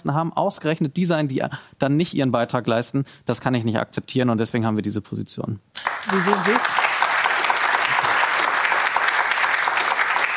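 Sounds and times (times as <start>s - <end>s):
speech: 0.0s - 6.8s
audience applause: 5.8s - 10.3s.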